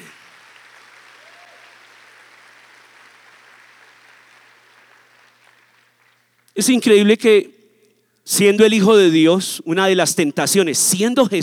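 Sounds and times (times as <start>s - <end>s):
audience applause: 0.0s - 6.4s
speech: 6.6s - 7.6s, 8.3s - 11.4s.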